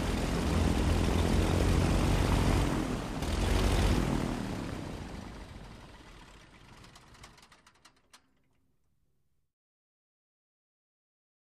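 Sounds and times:
second prop plane engine revving up: 0.0s - 5.5s
prop plane propeller buzzing: 0.0s - 8.2s.

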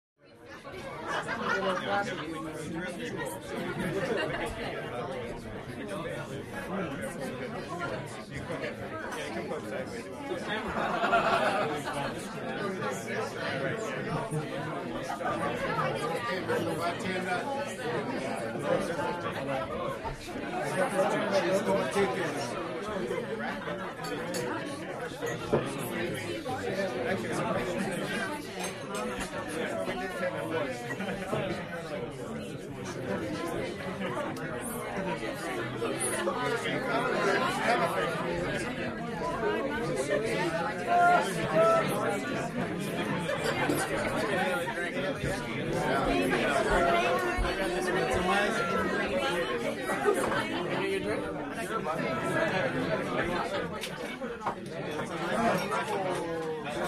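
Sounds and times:
happy chatter of 30 people in a small busy bar: 0.3s - 56.8s
laughter: 0.8s - 4.9s, 10.2s - 13.0s, 32.9s - 51.1s.

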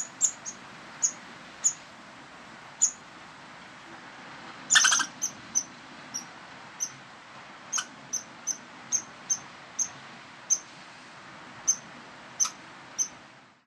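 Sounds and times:
rodent squeaking: 0.0s - 1.8s, 4.7s - 7.0s, 7.7s - 9.9s, 12.4s - 13.2s
soft background hiss: 0.0s - 13.6s.

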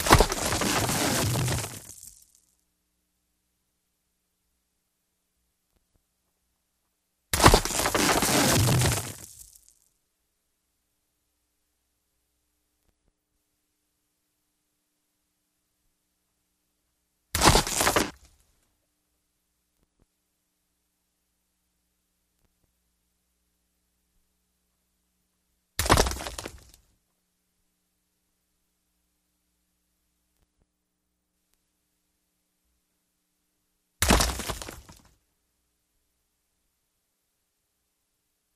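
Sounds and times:
big short rock crack with rocks and dirt: 0.0s - 2.4s, 7.4s - 9.7s, 17.4s - 18.3s, 25.8s - 26.8s, 34.0s - 35.2s.

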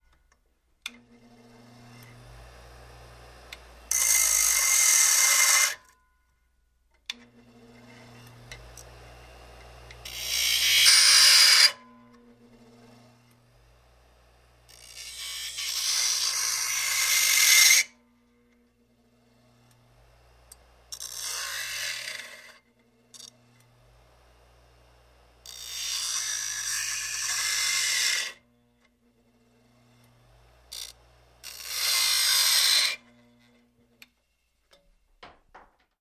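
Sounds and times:
electric grinder grinding: 1.0s - 5.8s, 7.5s - 18.0s, 19.0s - 28.4s, 29.2s - 33.6s.

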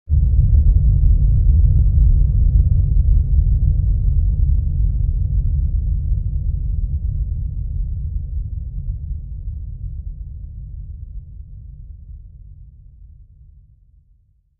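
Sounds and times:
blast rumble: 0.1s - 7.6s.

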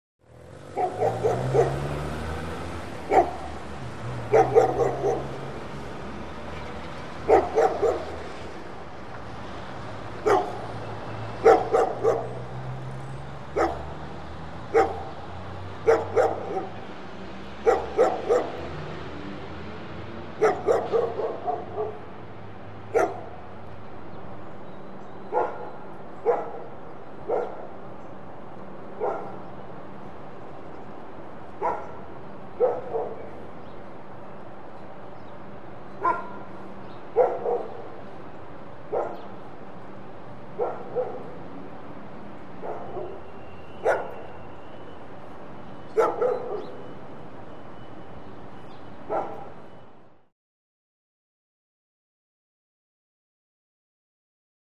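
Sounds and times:
dogs barking: 0.6s - 2.3s, 3.0s - 5.8s, 7.2s - 8.4s, 10.2s - 12.8s, 13.5s - 16.9s, 17.6s - 19.0s, 20.3s - 22.2s, 22.9s - 23.5s, 25.2s - 27.8s, 28.8s - 29.6s, 31.5s - 33.5s, 35.9s - 38.1s, 38.8s - 39.4s, 40.4s - 41.6s, 42.5s - 44.6s, 45.9s - 47.1s, 49.0s - 49.7s.

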